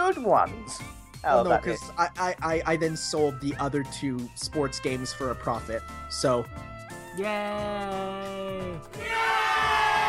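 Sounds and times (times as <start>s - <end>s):
speech: 0.1s - 9.4s
person imitating audience cheering: 7.2s - 10.0s.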